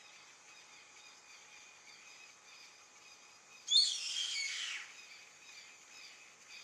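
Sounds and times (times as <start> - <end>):
hiss: 3.7 - 4.9
yellow-headed caracara screeching call: 3.7 - 5.0.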